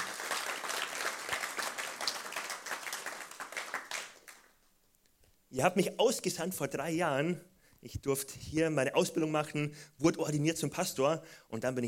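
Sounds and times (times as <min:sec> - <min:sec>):
church audience applause: 0:00.0 - 0:04.5
speech: 0:05.5 - 0:11.8.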